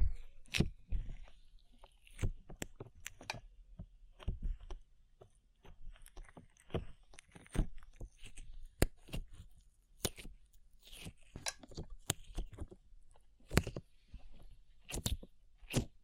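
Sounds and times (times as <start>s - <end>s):
sticky slime squished and pulled: 0.0s - 16.0s.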